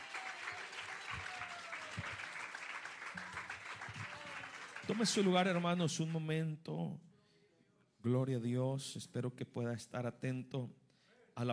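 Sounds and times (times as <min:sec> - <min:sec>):
audience clapping in praise: 0:00.0 - 0:06.3
speech: 0:04.9 - 0:07.1, 0:08.0 - 0:10.8, 0:11.4 - 0:11.5.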